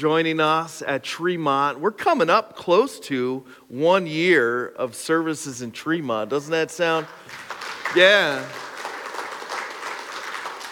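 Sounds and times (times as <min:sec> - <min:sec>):
speech: 0:00.0 - 0:08.7
audience clapping: 0:06.9 - 0:10.7.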